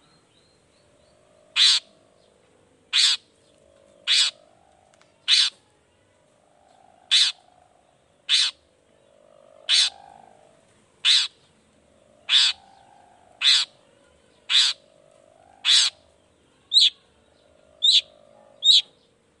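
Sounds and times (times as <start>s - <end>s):
faint hum: 0.0s - 19.3s
Long-tailed shrike rasping calls: 1.3s - 2.2s, 2.9s - 3.3s, 3.9s - 5.6s, 6.7s - 8.7s, 9.6s - 11.4s, 12.0s - 17.1s.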